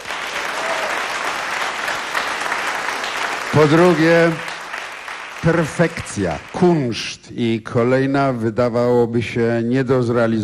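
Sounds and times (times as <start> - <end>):
audience applause: 0.0 - 7.1
speech: 3.5 - 4.5, 5.4 - 10.4.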